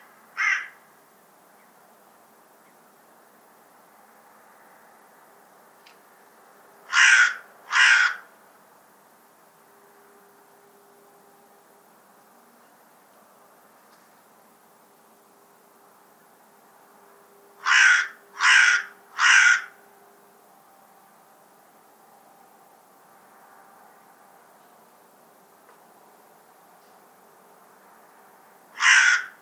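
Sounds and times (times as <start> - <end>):
harsh rasping bird call: 0.0 - 0.8, 6.9 - 8.3, 17.6 - 19.8, 28.8 - 29.4.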